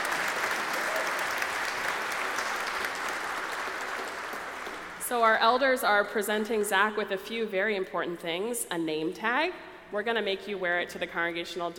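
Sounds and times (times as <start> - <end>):
audience applause: 0.0 - 5.0
speech: 5.1 - 11.7.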